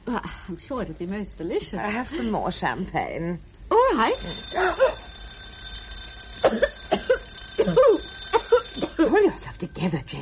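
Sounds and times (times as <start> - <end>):
speech: 0.1 - 5.1, 6.5 - 6.7, 7.6 - 8.0, 9.2 - 10.2
doorbell ringing: 4.1 - 9.7
thin sustained high-pitched tone: 4.2 - 9.2.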